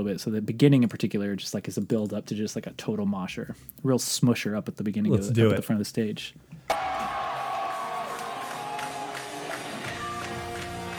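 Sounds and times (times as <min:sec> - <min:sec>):
speech: 0:00.0 - 0:06.9
large concert crowd roaring and cheering: 0:06.7 - 0:10.9
scattered claps: 0:06.7 - 0:10.9.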